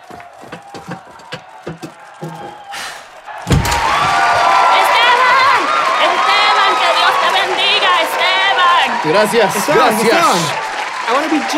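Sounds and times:
dull thumps and knocks: 0.0 - 2.6
crowd cheering: 0.0 - 11.5
speech: 9.1 - 11.5.

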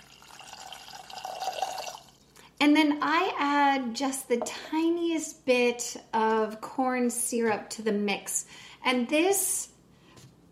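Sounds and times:
water pouring into a pot: 0.0 - 2.4
speech: 2.6 - 9.7.

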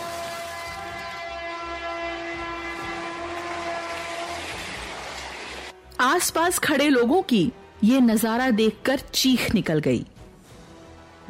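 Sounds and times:
train speeding past: 0.0 - 5.8
speech: 6.0 - 10.1.

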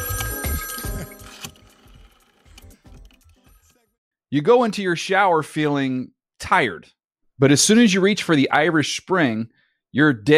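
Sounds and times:
telephone bell ringing: 0.0 - 2.2
speech: 4.3 - 10.3.

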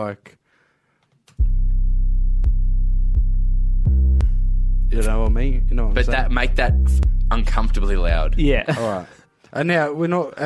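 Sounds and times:
speech: 0.0 - 0.4, 4.9 - 10.4
808 bass line with an octave jump: 1.4 - 8.6.

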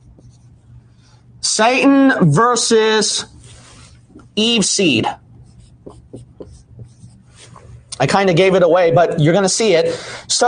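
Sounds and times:
pen scratching on paper writing notes by hand: 0.0 - 0.6, 5.4 - 7.6
speech: 1.5 - 3.3, 4.4 - 5.2, 8.0 - 10.4.

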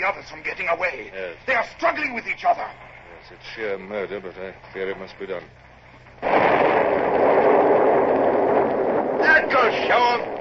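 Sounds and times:
speech: 0.0 - 5.6, 9.5 - 10.3
ship's cannons firing grapeshot: 6.2 - 10.3.

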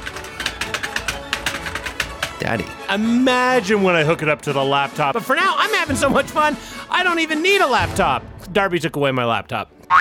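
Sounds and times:
light-up mechanical keyboard keys clacking: 0.0 - 2.7
speech: 2.4 - 9.9.

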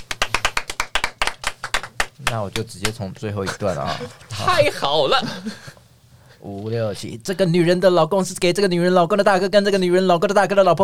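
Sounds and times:
hand clapping: 0.0 - 3.0
speech: 2.3 - 5.8, 6.4 - 10.8.

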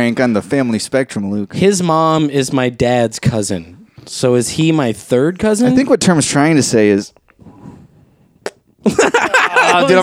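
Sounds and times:
speech: 0.0 - 7.2, 8.8 - 10.0
small fart: 8.4 - 8.8
laughter: 8.8 - 10.0.

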